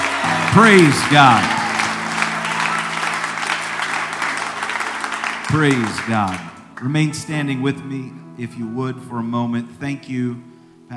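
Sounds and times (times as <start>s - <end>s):
audience clapping hands in praise: 0.0s - 7.0s
speech: 0.6s - 1.5s, 5.5s - 10.9s.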